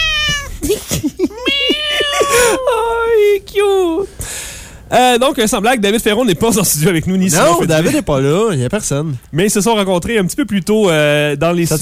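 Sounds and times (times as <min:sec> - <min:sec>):
cat meowing: 0:00.0 - 0:00.6, 0:01.4 - 0:02.9
laughter: 0:00.6 - 0:03.2
speech: 0:04.9 - 0:11.7.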